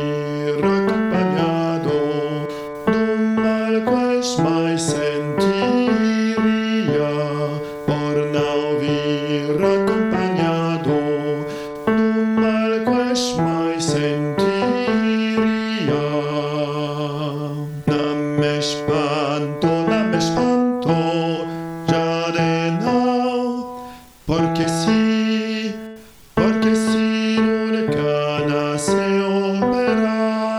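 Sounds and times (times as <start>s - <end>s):
tenor voice singing: 0.0s - 30.5s.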